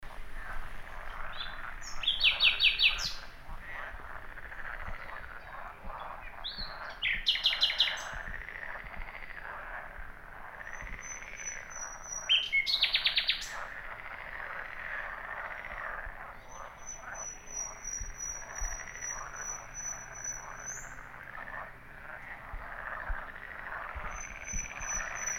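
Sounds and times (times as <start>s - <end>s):
frog chorus: 0.1s - 25.3s
common nightingale trilling: 0.9s - 9.7s, 10.5s - 13.7s, 15.1s - 21.2s, 23.7s - 25.3s.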